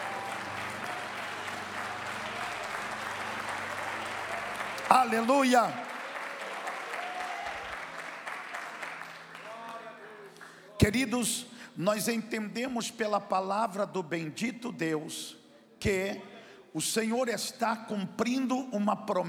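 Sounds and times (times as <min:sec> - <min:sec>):
applause: 0:00.0 - 0:11.1
speech: 0:04.9 - 0:05.8, 0:10.9 - 0:19.2.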